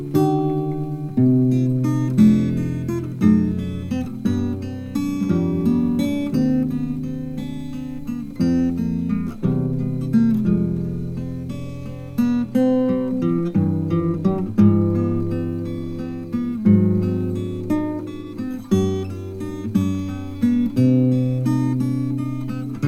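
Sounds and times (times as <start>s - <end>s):
gavotte on acoustic guitar: 0.0s - 22.8s.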